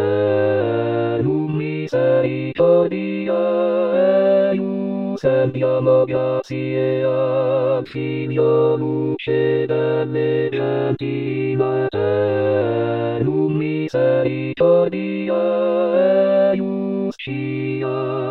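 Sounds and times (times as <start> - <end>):
choir singing: 0.0 - 18.2.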